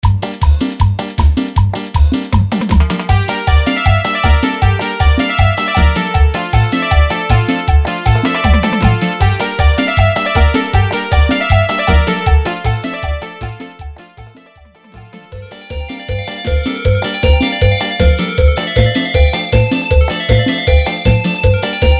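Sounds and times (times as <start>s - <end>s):
bachata instrumental with a cappella vocals at 157 bpm: 0.0s - 21.9s.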